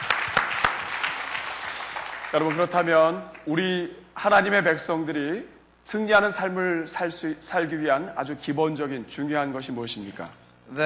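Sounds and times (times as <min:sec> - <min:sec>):
audience applause: 0:00.0 - 0:03.1
speech: 0:02.3 - 0:10.8.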